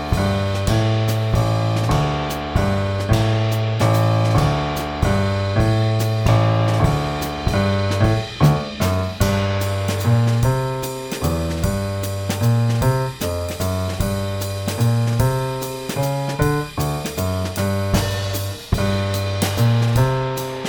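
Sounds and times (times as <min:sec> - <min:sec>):
jazz waltz backing track in G minor on keyboard: 0:00.0 - 0:20.6.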